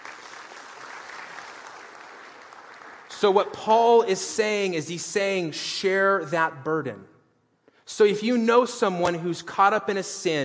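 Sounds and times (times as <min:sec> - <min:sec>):
audience applause: 0:00.0 - 0:03.4
speech: 0:03.2 - 0:07.1, 0:07.9 - 0:10.4.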